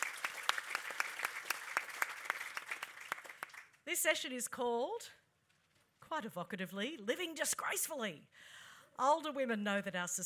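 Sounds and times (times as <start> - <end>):
audience applause: 0.0 - 3.8
speech: 3.9 - 5.2, 6.1 - 10.2.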